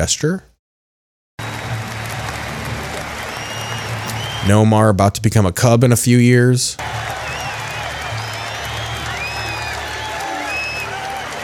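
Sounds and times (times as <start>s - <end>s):
speech: 0.0s - 0.5s, 4.4s - 7.2s
stadium crowd cheering: 1.4s - 4.9s, 6.8s - 11.4s.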